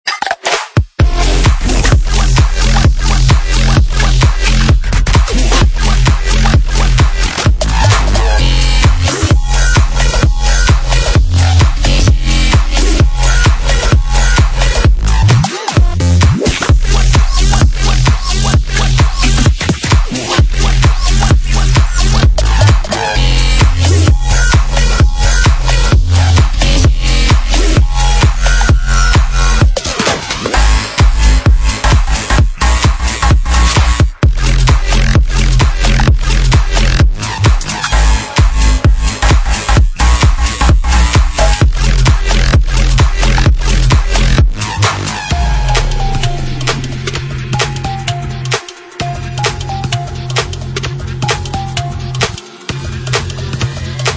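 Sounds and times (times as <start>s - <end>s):
bass house music: 0.2s - 54.1s.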